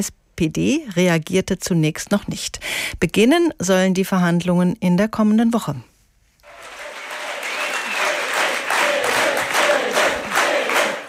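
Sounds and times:
speech: 0.0 - 5.9
applause at the Left party's special conference: 6.4 - 11.0
crowd cheering at the Left party's special conference: 6.4 - 11.0.

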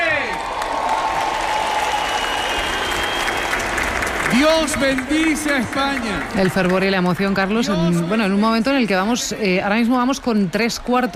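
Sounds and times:
crowd applauding as the Pope's procession passes: 0.0 - 8.5
speech: 4.4 - 11.1.

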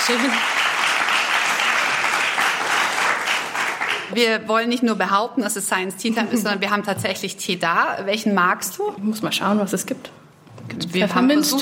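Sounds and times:
studio audience applause: 0.0 - 4.1
speech: 0.1 - 0.6, 4.1 - 10.2, 10.8 - 11.6.

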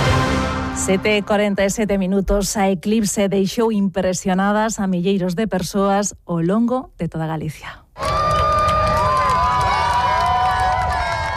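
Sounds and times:
speech: 0.8 - 8.2
crowd applauding during solar eclipse: 8.0 - 11.3.

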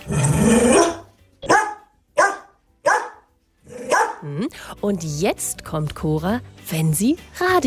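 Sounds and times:
dog barking: 0.7 - 4.2
speech: 4.2 - 7.6.

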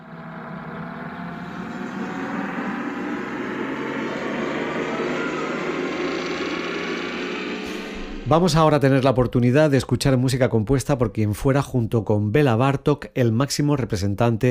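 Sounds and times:
time machine travel sound effect: 0.2 - 9.4
speech: 8.3 - 14.5.

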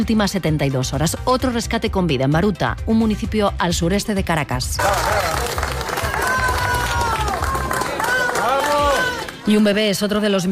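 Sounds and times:
speech: 0.0 - 5.5, 9.5 - 10.4
cheering: 4.8 - 9.5
crowd applauding rescuers after a rubble rescue in Baruta near Caracas: 4.8 - 9.8.

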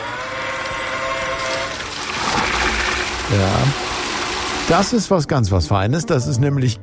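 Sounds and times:
watering robot at work: 0.0 - 5.2
speech: 3.3 - 3.9, 4.7 - 6.8.

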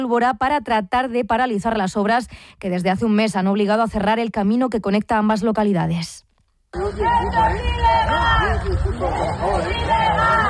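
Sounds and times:
speech: 0.0 - 10.4
protesting residents shouting: 6.8 - 10.4.

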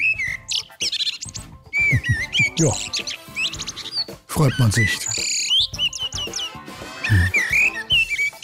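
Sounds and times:
common blackbird song: 0.0 - 8.4
speech: 2.0 - 3.0, 4.4 - 5.2.

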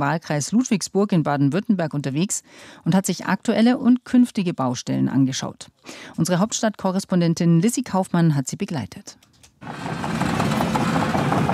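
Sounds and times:
speech: 0.0 - 10.0
excavators rolling at a construction site at a primary school: 9.6 - 11.5.

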